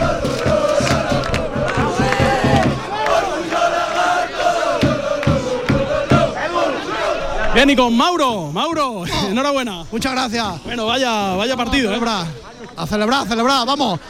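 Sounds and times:
rhythmic beats: 0:00.0 - 0:03.8, 0:04.4 - 0:06.4
football fans chanting and cheering in celebration: 0:00.0 - 0:14.0
speech: 0:07.6 - 0:14.0.

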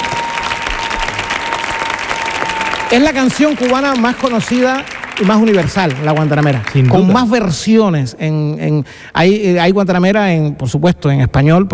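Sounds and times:
audience applause for a Cuban música campesina singer: 0:00.0 - 0:07.6
speech: 0:02.9 - 0:11.7.

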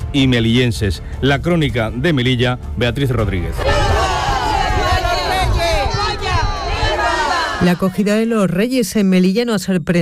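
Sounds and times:
speech: 0:00.1 - 0:04.0, 0:07.6 - 0:09.9
street crowd cheering: 0:03.6 - 0:08.1.

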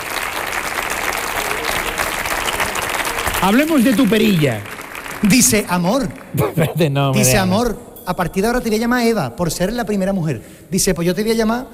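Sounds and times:
audience applause: 0:00.0 - 0:06.4
speech: 0:03.4 - 0:11.7.

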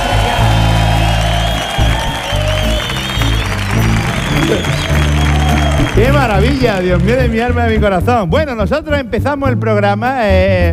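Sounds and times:
studio audience at a comedy show clapping: 0:00.0 - 0:08.2
speech: 0:06.0 - 0:10.7.

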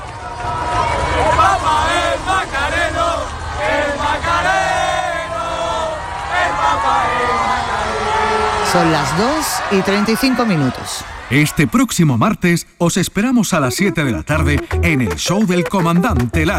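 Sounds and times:
crowd of young people shouting and chanting: 0:00.0 - 0:11.8
speech: 0:08.7 - 0:16.5.

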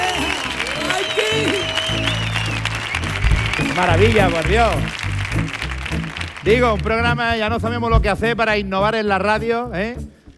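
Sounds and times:
audience applauding in the Auditorio Cartuja during a live radio comedy show: 0:00.0 - 0:07.9
speech: 0:03.8 - 0:05.0, 0:06.4 - 0:10.2.

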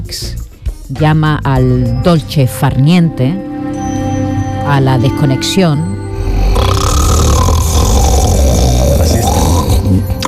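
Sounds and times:
speech: 0:00.1 - 0:03.5, 0:04.7 - 0:05.9
snoring: 0:06.1 - 0:10.2.

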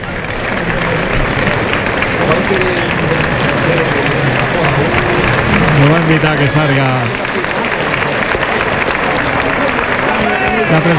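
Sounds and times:
crowd ovation: 0:00.0 - 0:10.9
speech: 0:02.5 - 0:04.0, 0:05.8 - 0:07.5, 0:10.7 - 0:10.9.

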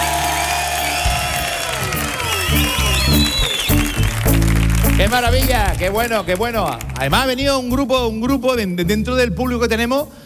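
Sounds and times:
audience shouts and whoops: 0:00.0 - 0:03.8
audience applauding at the Auditorio Cartuja: 0:00.0 - 0:07.5
speech: 0:05.0 - 0:10.2.

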